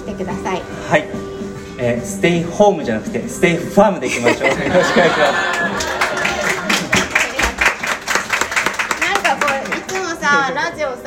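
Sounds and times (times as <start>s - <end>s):
speech: 0.2s - 5.9s
laughter: 4.0s - 7.4s
applause: 5.2s - 10.2s.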